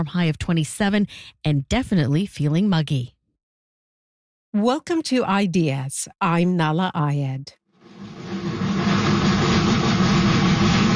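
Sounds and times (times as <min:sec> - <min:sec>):
speech: 0:00.0 - 0:03.2, 0:04.5 - 0:07.6
steam locomotive chugging: 0:07.9 - 0:10.9.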